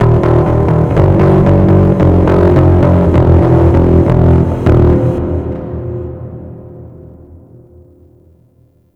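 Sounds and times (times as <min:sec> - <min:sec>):
stage bass guitar: 0:00.0 - 0:05.6.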